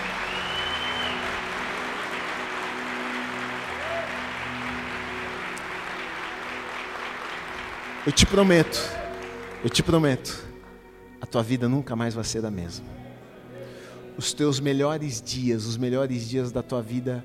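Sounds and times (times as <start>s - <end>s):
audience applause: 0.0s - 10.2s
speech: 8.1s - 9.0s, 9.6s - 10.5s, 11.2s - 13.0s, 14.2s - 17.2s.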